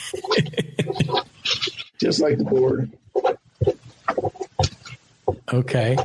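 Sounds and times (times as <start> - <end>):
laughter: 0.0 - 2.7
pen scribbling on paper: 0.0 - 6.0
speech: 0.1 - 0.6, 2.0 - 3.0, 5.5 - 6.0.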